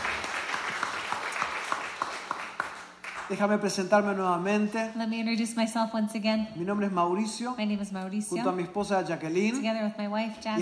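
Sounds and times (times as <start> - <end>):
audience applause at a church welcome: 0.0 - 3.8
speech: 3.3 - 10.6.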